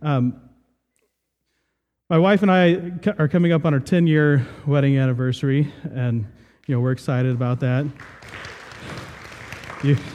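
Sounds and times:
speech: 0:00.0 - 0:00.5, 0:02.1 - 0:09.0, 0:09.8 - 0:10.1
audience applause: 0:07.2 - 0:10.1.

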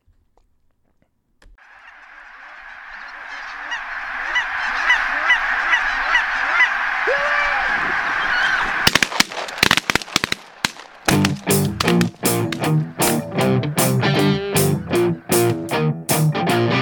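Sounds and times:
large flock of geese honking: 0:01.6 - 0:15.8
sharp cracks: 0:08.7 - 0:14.0.

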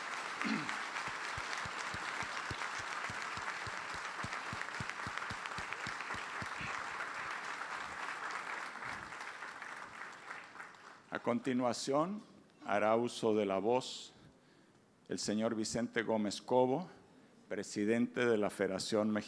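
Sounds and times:
audience applause: 0:00.0 - 0:11.1
speech: 0:11.2 - 0:14.2, 0:15.1 - 0:19.2.

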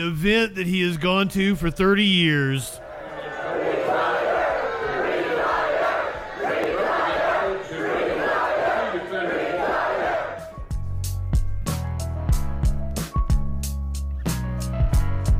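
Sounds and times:
speech: 0:00.0 - 0:02.8
crowd heckling and chanting at Mitch McConnell at a Kentucky event: 0:00.7 - 0:10.8
music with a steady beat: 0:10.5 - 0:15.3.

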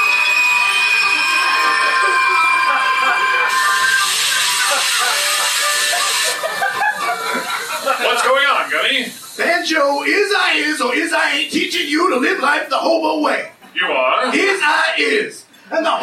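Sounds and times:
train screeching to a sudden halt: 0:00.0 - 0:06.6
laughter: 0:01.2 - 0:08.7
speech: 0:09.7 - 0:16.0.

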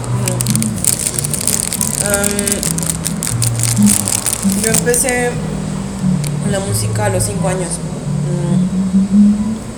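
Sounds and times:
crunchy chewing of a chocolate-covered coffee bean: 0:00.0 - 0:05.2
speech: 0:02.0 - 0:02.9, 0:03.8 - 0:09.5.

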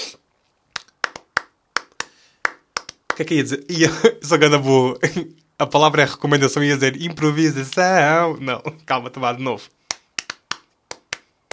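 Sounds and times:
rhythmic hand clapping: 0:00.8 - 0:03.3, 0:09.8 - 0:11.5
speech: 0:03.2 - 0:09.8.

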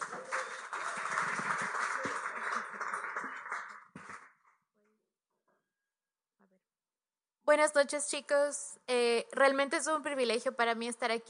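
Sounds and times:
audience applause: 0:00.0 - 0:04.4
speech: 0:07.5 - 0:11.2.

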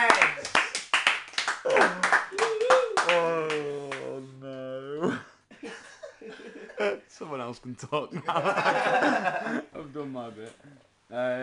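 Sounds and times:
small group clapping: 0:00.0 - 0:04.2
people whooping and cheering: 0:01.6 - 0:04.0
speech: 0:07.2 - 0:11.4
laughter: 0:08.1 - 0:09.7.

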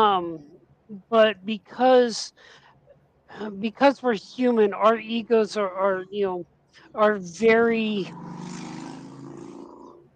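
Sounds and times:
speech: 0:00.0 - 0:02.6, 0:03.3 - 0:08.6
motorcycle engine passing: 0:08.0 - 0:10.1.

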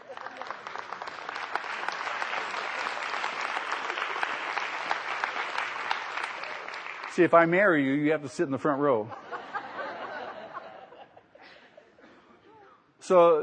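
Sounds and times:
laughter: 0:00.0 - 0:01.0, 0:09.0 - 0:12.0
congregation applauding: 0:00.0 - 0:07.9
speech: 0:07.2 - 0:09.2, 0:13.1 - 0:13.4.

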